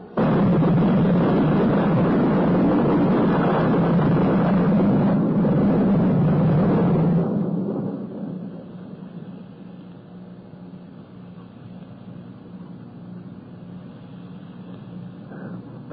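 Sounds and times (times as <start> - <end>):
thunder in an electric storm: 0.2 - 10.9.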